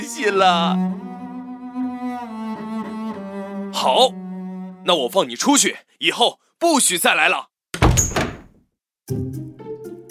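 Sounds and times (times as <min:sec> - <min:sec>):
speech: 0:00.2 - 0:01.1, 0:03.8 - 0:04.2, 0:04.8 - 0:08.1, 0:09.1 - 0:09.3
door being opened: 0:07.8 - 0:08.6.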